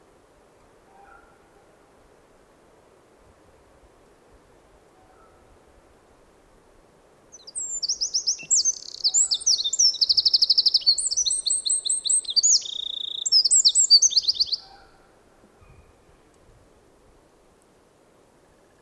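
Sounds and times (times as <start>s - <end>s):
Eurasian wren song: 7.3s - 14.9s.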